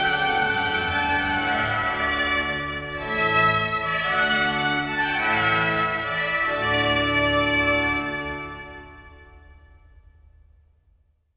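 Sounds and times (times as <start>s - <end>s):
trumpet for an entrance procession: 0.0s - 9.1s
organ for an entrance procession: 0.0s - 10.0s.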